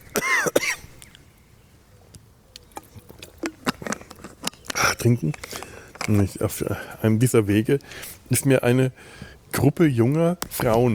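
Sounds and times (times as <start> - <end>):
person coughing after choking on a drink: 0.1 - 0.8
speech: 5.0 - 10.9.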